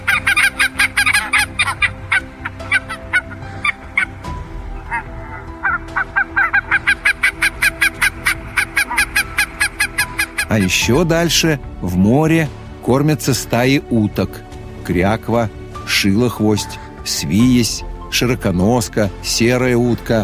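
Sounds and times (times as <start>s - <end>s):
barnacle geese flock calling: 0.0s - 11.1s
speech: 10.6s - 20.2s.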